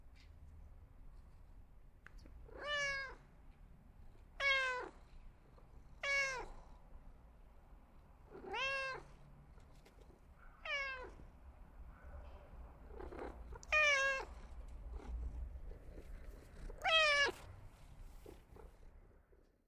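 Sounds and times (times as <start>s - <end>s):
cat meowing for attention: 2.5s - 3.3s, 4.4s - 5.0s, 6.0s - 6.6s, 8.3s - 9.1s, 10.6s - 11.2s, 13.0s - 14.6s, 16.7s - 17.5s.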